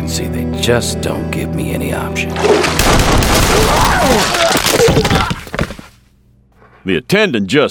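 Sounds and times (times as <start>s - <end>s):
speech: 0.2s - 5.4s, 6.9s - 7.7s
gunshots in a room: 2.4s - 4.6s.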